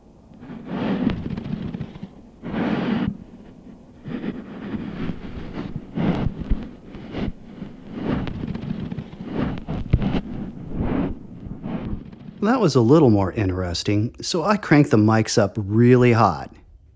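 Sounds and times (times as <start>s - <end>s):
hydrophone recording of sand moving underfoot in the dunes: 0.0s - 16.9s
speech: 12.4s - 16.9s.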